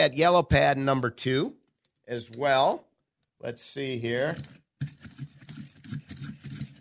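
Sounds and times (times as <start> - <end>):
speech: 0.0 - 5.4
old Boston crank pencil sharpener sharpening a pencil: 4.3 - 6.7.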